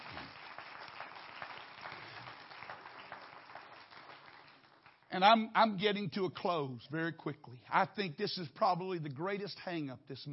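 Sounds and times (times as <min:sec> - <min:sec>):
audience clapping: 0:00.0 - 0:05.4
speech: 0:05.1 - 0:10.3.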